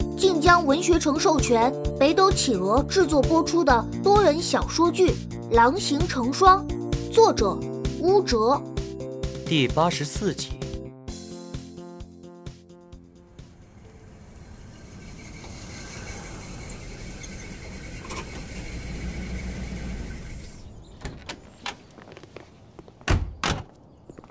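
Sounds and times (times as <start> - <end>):
speech: 0.2 - 8.7, 9.5 - 10.6
car engine humming: 12.8 - 23.8
car door opening and closing: 19.4 - 22.0, 23.0 - 23.8
latch clicks: 20.9 - 21.9, 23.0 - 23.8.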